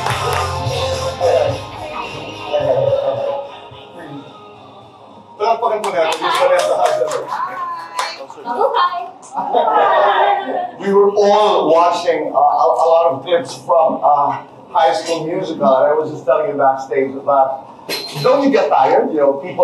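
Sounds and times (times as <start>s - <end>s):
audience clapping at a live event: 0.0s - 1.5s, 5.7s - 8.4s
crowd chatter: 0.0s - 19.6s
laughter: 6.2s - 11.0s
speech: 10.9s - 19.6s.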